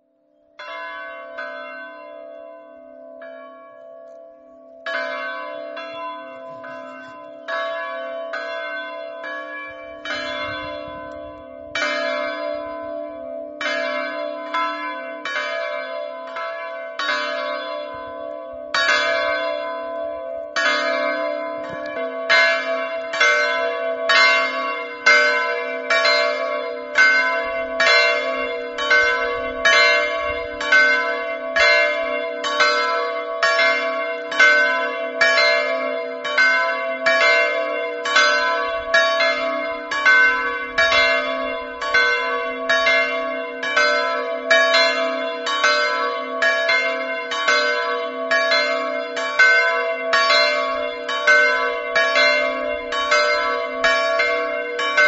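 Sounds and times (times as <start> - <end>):
bells ringing: 0.6 - 55.0.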